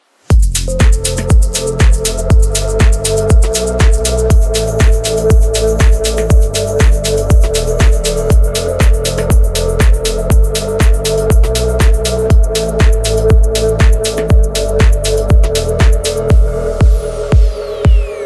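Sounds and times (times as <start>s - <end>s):
organic shakers: 0.3s - 18.0s.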